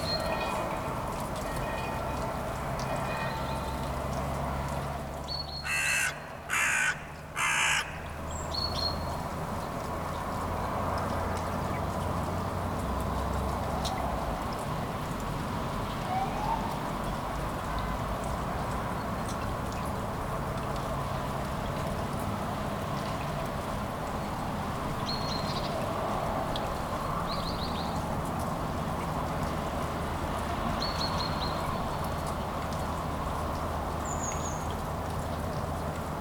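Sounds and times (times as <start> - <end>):
light morning rain on city streets in Kuldiga, Latvia: 0.0 - 36.1
low traffic rumble in Kuldiga, Latvia: 0.0 - 36.1
harsh bird calls: 5.6 - 8.1.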